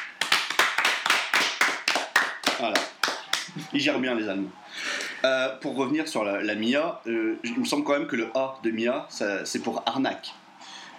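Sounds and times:
hand clapping: 0.0s - 3.7s
speech: 2.6s - 10.4s.

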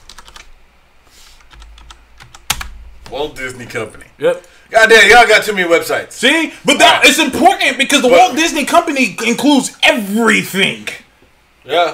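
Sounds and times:
typing on a computer keyboard: 0.0s - 0.5s, 1.4s - 2.7s
speech: 3.1s - 11.0s, 11.6s - 11.9s.

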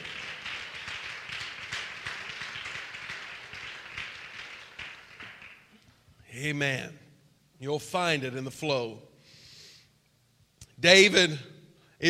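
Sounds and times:
audience clapping: 0.0s - 6.0s
speech: 6.4s - 7.0s, 7.6s - 9.1s, 10.8s - 12.0s.

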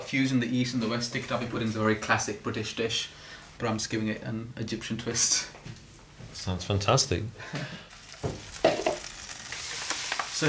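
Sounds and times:
low hiss: 0.0s - 10.4s
speech: 0.1s - 5.8s, 6.4s - 8.4s
cinnamon caramel sauce sizzling and stirred in a pan: 7.9s - 10.4s.

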